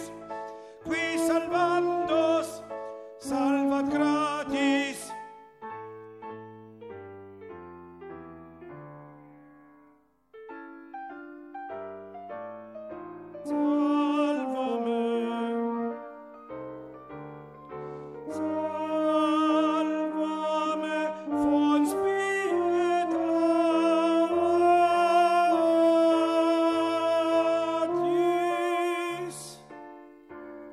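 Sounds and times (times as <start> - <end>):
tenor singing: 0.0 - 5.6, 13.3 - 16.5, 17.9 - 30.7.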